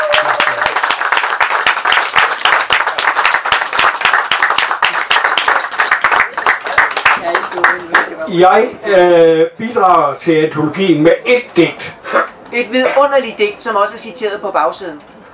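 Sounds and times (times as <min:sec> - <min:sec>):
audience applause: 0:00.0 - 0:08.2
speech: 0:08.3 - 0:11.9, 0:12.5 - 0:15.2.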